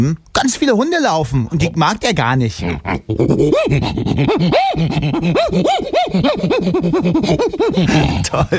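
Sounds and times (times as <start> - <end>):
speech: 0.0 - 8.5
human voice imitating agitated lemur calls: 2.6 - 8.2.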